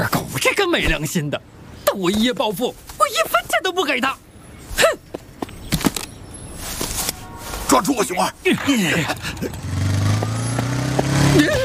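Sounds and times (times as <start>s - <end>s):
speech: 0.0s - 4.2s, 7.7s - 9.7s, 11.4s - 11.6s
motorbike engine passing: 9.0s - 11.6s.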